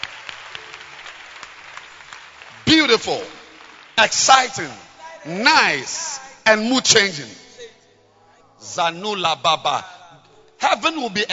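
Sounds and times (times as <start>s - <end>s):
people clapping: 0.0s - 5.2s
speech: 2.8s - 3.4s, 4.0s - 7.4s, 8.6s - 9.9s, 10.6s - 11.3s.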